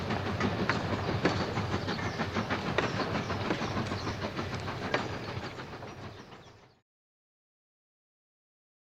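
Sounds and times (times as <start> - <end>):
steam train stopping: 0.0 - 6.8.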